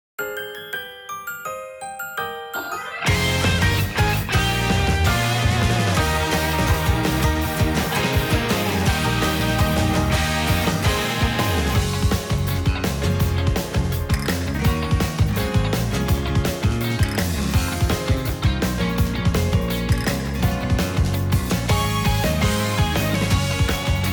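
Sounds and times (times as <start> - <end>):
instrumental music: 0.2 - 24.1.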